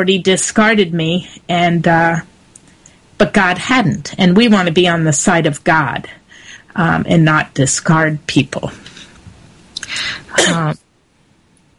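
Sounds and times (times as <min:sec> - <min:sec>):
speech: 0:00.0 - 0:02.3, 0:03.2 - 0:06.2, 0:06.8 - 0:08.9, 0:09.9 - 0:10.8
person coughing into a microphone: 0:09.8 - 0:10.8.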